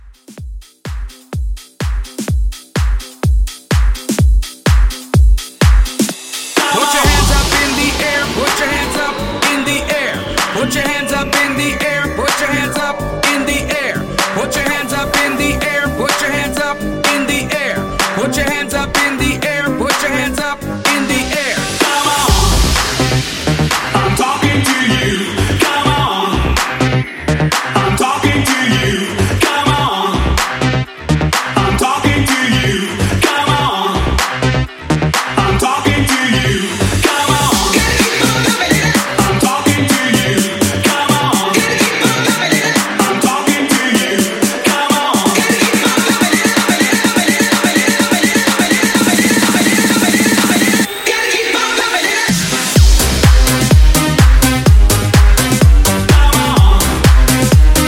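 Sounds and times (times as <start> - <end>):
clean club hype music: 0.1 - 57.8.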